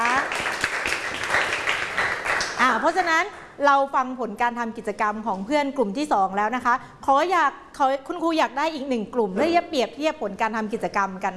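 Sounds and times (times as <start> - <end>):
classroom applause: 0.0 - 3.1
speech: 2.6 - 11.3.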